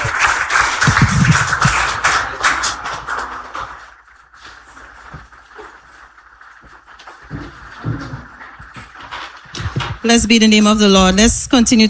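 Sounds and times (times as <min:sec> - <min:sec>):
room full of people applauding: 0:00.0 - 0:08.9
shuffling: 0:04.1 - 0:11.8
speech: 0:10.0 - 0:11.8.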